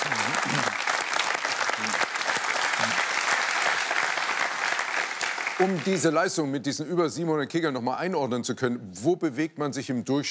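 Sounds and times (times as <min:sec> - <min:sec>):
audience applause: 0:00.0 - 0:06.2
speech: 0:05.6 - 0:10.2.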